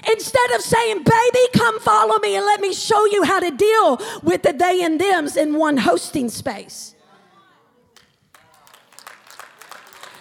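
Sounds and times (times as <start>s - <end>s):
speech: 0.1s - 7.0s
audience clapping: 7.9s - 10.1s.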